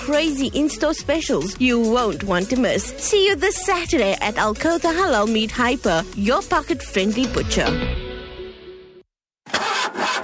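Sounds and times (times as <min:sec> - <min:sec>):
speech: 0:00.1 - 0:08.0
old car engine struggling to start: 0:09.5 - 0:10.2.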